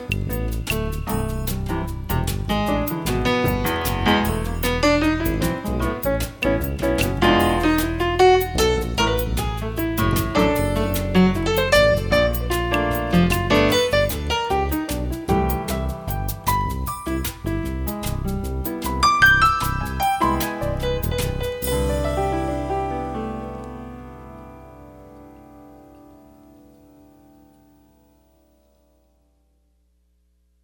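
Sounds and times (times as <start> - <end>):
samba music: 0.0 - 23.4.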